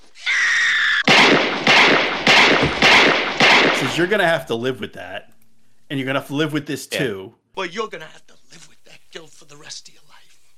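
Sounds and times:
gunshots in a film scene: 1.1 - 4.2
speech: 4.0 - 10.0.

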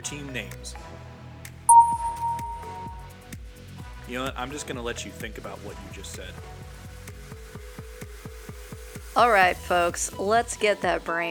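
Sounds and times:
speech: 0.0 - 1.0, 4.1 - 6.6, 9.2 - 11.2
beep signal: 1.7 - 3.1.

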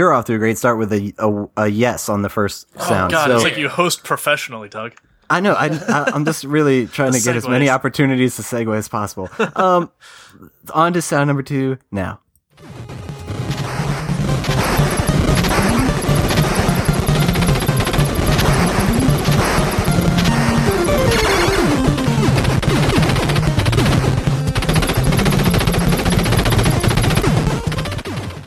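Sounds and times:
speech: 0.0 - 12.8
laughter: 2.8 - 3.8, 5.4 - 7.6, 9.2 - 10.0
retro NES video game gunfire from Contra: 12.6 - 28.4.

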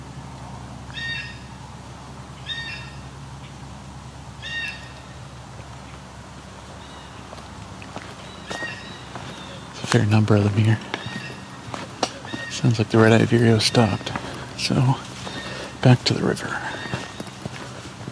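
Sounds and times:
blue jay call: 0.9 - 1.6, 2.4 - 3.1, 4.4 - 5.2, 8.2 - 9.8, 10.8 - 12.8, 15.2 - 17.6
speech: 9.9 - 10.9, 12.6 - 15.1, 15.8 - 16.6.

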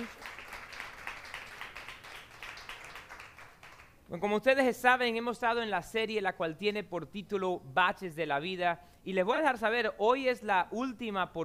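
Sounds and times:
audience applause: 0.0 - 3.9
speech: 4.1 - 11.4.

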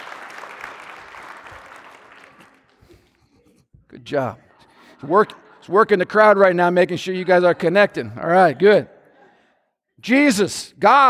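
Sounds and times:
audience applause: 0.0 - 2.8
speech: 4.0 - 4.4, 5.0 - 8.9, 10.0 - 11.0.

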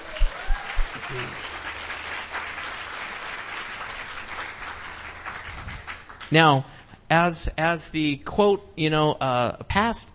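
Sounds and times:
audience applause: 0.0 - 6.4
speech: 1.1 - 1.6, 6.3 - 10.1.

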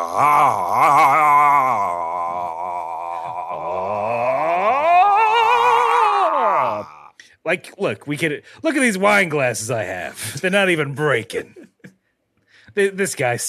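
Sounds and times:
voice imitating a charging-up yell with vibrato: 0.0 - 7.1
speech: 0.1 - 1.2, 7.5 - 11.6, 12.8 - 13.4.

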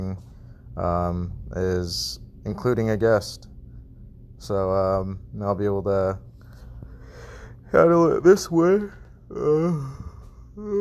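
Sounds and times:
speech: 0.1 - 3.5, 4.4 - 6.3, 7.7 - 10.7
low vocal sound: 9.3 - 10.7
person yawning: 9.3 - 10.7.

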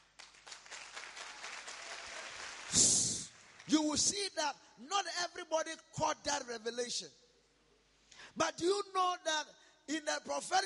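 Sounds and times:
audience clapping: 0.0 - 3.7
speech: 3.7 - 7.2, 8.4 - 10.6.

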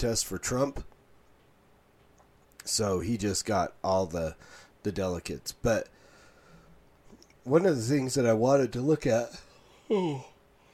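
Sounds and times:
speech: 0.0 - 0.9, 2.6 - 6.0, 7.4 - 10.3
person yawning: 9.8 - 10.4.

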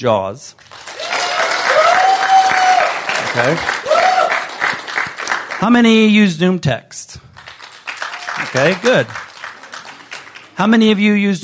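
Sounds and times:
speech: 0.0 - 0.9, 3.3 - 3.8, 5.6 - 7.3, 8.5 - 9.3, 10.6 - 11.4
audience clapping: 0.6 - 6.2, 7.3 - 11.2.

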